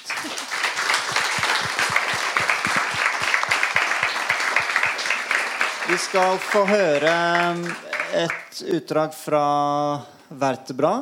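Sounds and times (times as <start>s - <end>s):
audience applause: 0.0s - 8.6s
speech: 5.9s - 11.0s.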